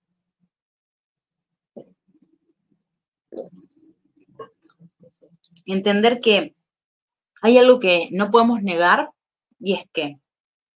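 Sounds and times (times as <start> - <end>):
person taking a sip of water: 3.3 - 5.6
speech: 5.6 - 6.6, 7.4 - 10.2.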